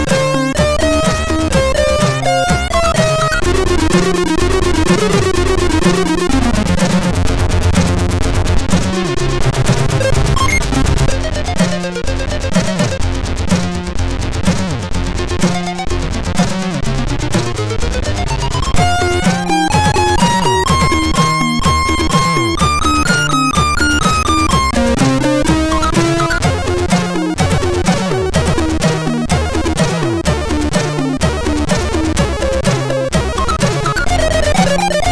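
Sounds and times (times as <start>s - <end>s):
heavy metal music on MOS6581 sound chip: 0.0s - 35.1s.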